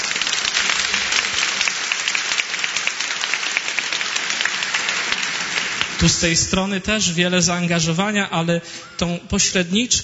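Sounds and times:
loud applause from a crowd: 0.0s - 6.8s
speech: 6.0s - 10.0s.

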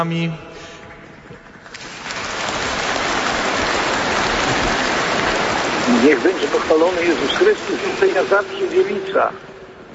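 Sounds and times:
speech: 0.0s - 0.5s, 5.9s - 9.5s
applause: 1.6s - 8.5s.

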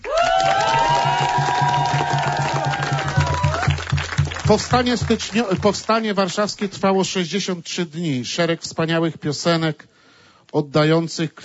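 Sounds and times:
audience applause: 0.0s - 6.1s
speech: 4.5s - 9.9s, 10.5s - 11.4s.

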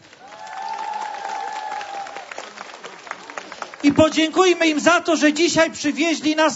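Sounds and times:
audience applause: 0.0s - 4.9s
speech: 3.8s - 6.5s.

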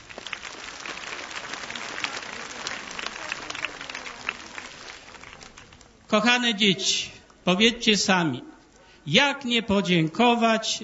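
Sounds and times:
small applause from children: 0.0s - 6.0s
speech: 6.1s - 10.8s.

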